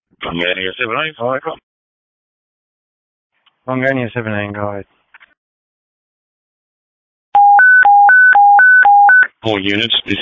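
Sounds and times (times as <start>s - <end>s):
speech: 0.2s - 1.7s, 3.7s - 5.0s, 9.4s - 10.2s
radio duress alarm activation tone: 7.4s - 9.3s.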